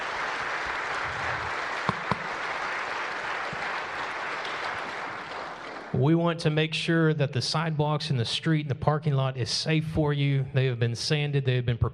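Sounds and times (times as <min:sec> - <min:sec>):
round of applause: 0:00.0 - 0:06.0
speech: 0:05.9 - 0:11.9.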